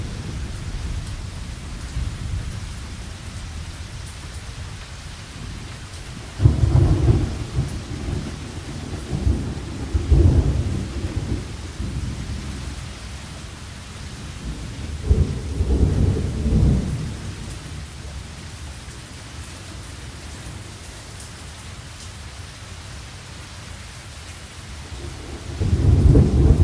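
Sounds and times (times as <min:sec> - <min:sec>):
thunderstorm: 0:00.0 - 0:18.4, 0:24.9 - 0:26.6.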